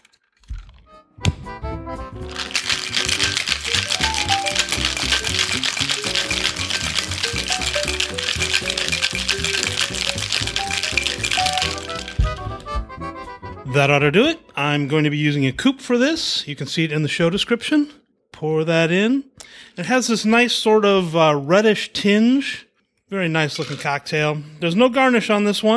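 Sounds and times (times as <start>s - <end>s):
ice cubes rattling in a cocktail shaker: 2.3s - 12.8s, 23.6s - 24.0s
speech: 13.7s - 25.7s.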